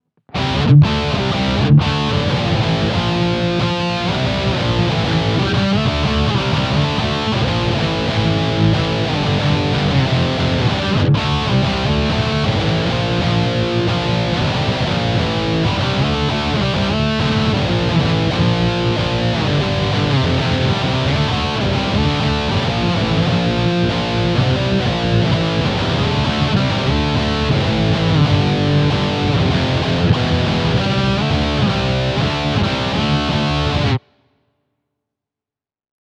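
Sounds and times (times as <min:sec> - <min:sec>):
high gain distortion: 0:00.3 - 0:34.0.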